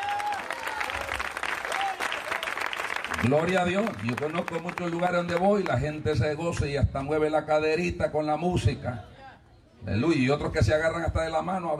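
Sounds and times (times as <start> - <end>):
audience applause: 0.0 - 5.9
speech: 3.2 - 9.1, 9.8 - 11.7.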